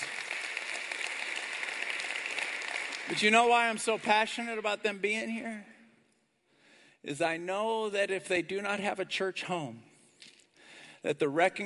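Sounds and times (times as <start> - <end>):
crowd clapping: 0.0 - 4.8
speech: 3.1 - 5.7, 7.0 - 9.9, 11.0 - 11.6.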